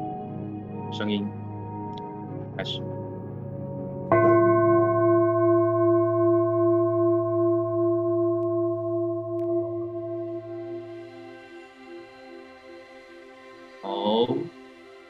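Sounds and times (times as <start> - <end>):
speech: 0.9 - 1.4, 2.6 - 3.0
Nepalese singing bowl being struck: 4.1 - 12.0.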